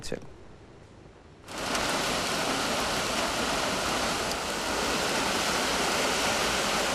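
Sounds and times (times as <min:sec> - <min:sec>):
heavy downpour during street flooding in Adana: 0:01.4 - 0:06.9
rushing floodwater: 0:01.5 - 0:06.9.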